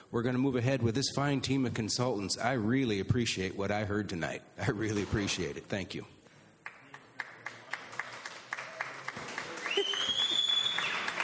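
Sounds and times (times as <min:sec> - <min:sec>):
speech: 0:00.1 - 0:06.2
sparse hand clapping: 0:06.6 - 0:11.2
high sustained whistling tone: 0:09.6 - 0:11.1.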